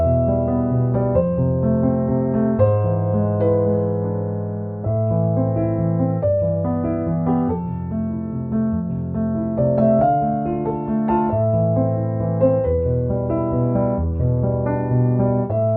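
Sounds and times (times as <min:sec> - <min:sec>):
piano music: 0:00.0 - 0:15.7.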